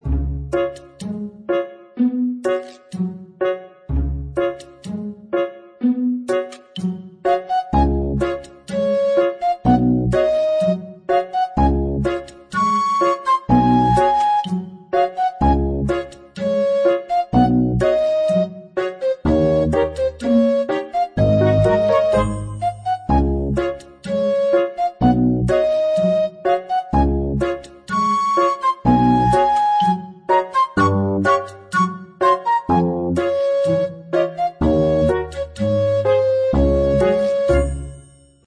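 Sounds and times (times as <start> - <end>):
background music: 0.0 - 38.4.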